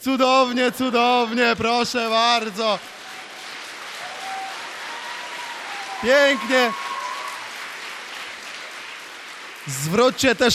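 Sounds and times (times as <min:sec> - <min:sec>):
speech: 0:00.0 - 0:03.0, 0:06.0 - 0:06.8, 0:09.6 - 0:10.5
crowd applause at a ski jumping competition: 0:00.4 - 0:10.5.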